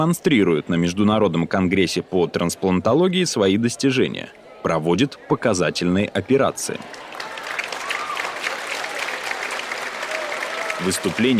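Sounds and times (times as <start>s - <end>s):
speech: 0.0s - 7.1s, 10.8s - 11.3s
standing audience applauding: 6.7s - 11.3s.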